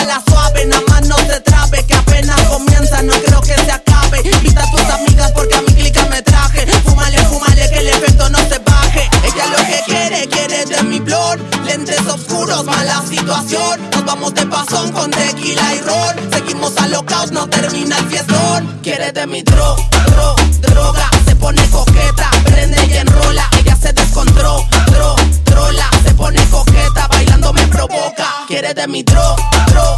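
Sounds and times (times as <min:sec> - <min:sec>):
moombah Latin drum loop: 0:00.0 - 0:18.3, 0:19.5 - 0:27.9, 0:29.1 - 0:29.9.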